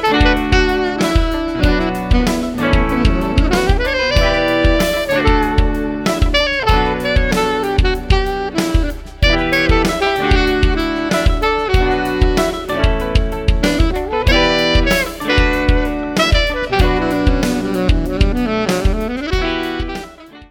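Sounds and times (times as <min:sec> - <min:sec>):
guitar: 0:00.0 - 0:20.5
smooth saxophone: 0:00.0 - 0:20.5.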